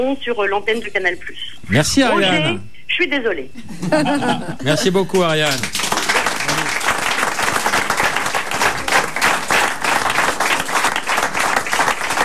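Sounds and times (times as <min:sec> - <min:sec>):
speech: 0:00.0 - 0:06.2
laughter: 0:03.6 - 0:05.2
audience applause: 0:05.1 - 0:12.2.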